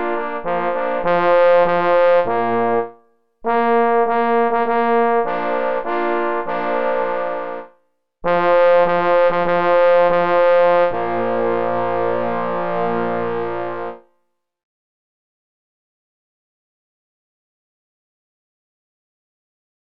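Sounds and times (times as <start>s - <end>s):
march played on three parforce hunting horns: 0.0s - 2.9s, 3.5s - 14.0s.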